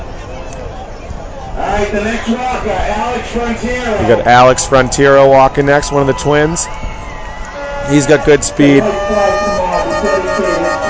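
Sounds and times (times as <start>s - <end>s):
speech: 1.6s - 6.9s, 7.9s - 9.4s
horns honking: 7.4s - 10.8s.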